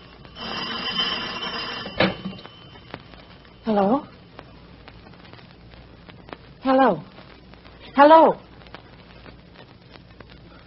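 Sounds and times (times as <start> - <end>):
telephone ringing: 0.0 - 4.1
speech: 3.7 - 4.1, 6.8 - 7.1, 8.0 - 8.5.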